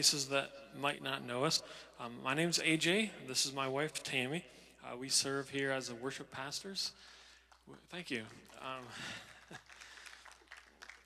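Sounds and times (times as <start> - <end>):
speech: 0.0 - 9.8
audience applause: 8.2 - 11.0.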